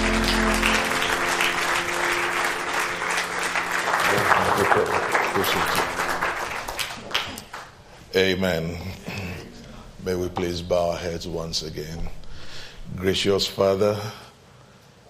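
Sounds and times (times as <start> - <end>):
audience hand clapping: 0.0 - 8.0
speech: 8.2 - 9.1, 10.0 - 12.2, 12.9 - 14.2.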